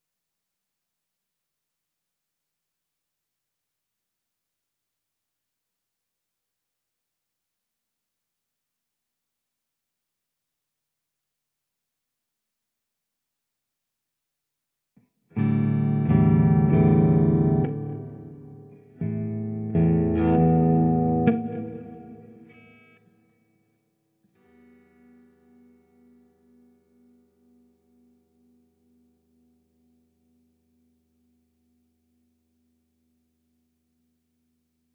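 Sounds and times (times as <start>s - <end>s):
guitar effects: 15.3s - 23.6s, 24.4s - 28.3s.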